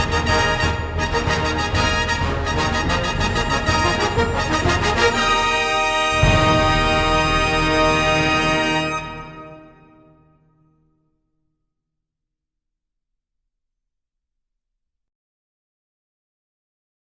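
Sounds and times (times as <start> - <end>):
wind instrument fanfare: 0.0 - 10.2.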